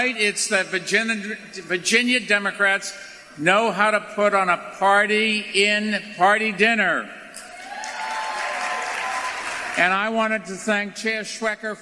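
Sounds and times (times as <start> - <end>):
speech: 0.0 - 7.2, 9.8 - 11.8
people applauding at a dinner event: 7.4 - 10.2.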